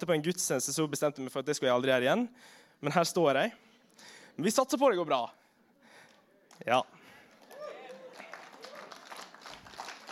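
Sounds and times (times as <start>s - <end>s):
speech: 0.0s - 5.4s, 6.6s - 7.0s
audience applause: 7.3s - 10.0s.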